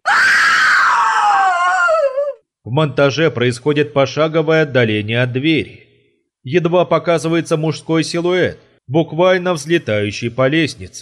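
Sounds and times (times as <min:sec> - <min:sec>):
inhuman scream: 0:00.0 - 0:02.4
speech: 0:02.7 - 0:05.8, 0:06.4 - 0:10.9.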